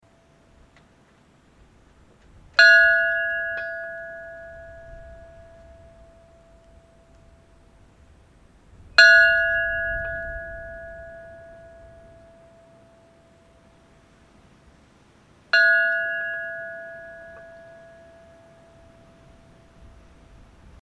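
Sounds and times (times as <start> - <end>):
church bells ringing for a funeral: 2.6 - 7.5, 9.0 - 13.7, 15.5 - 20.1.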